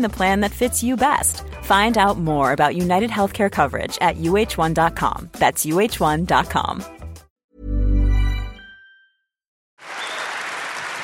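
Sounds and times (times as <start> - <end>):
speech: 0.0 - 7.0
chime-like tone: 8.0 - 9.3
audience applause: 9.8 - 11.0.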